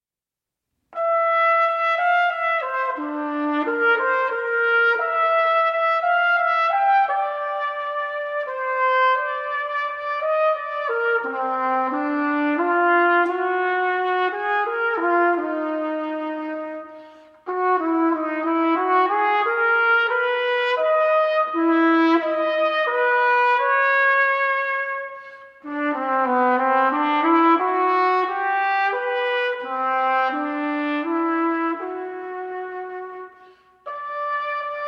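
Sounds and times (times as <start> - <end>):
unaccompanied solo trumpet waltz: 0.9 - 34.8.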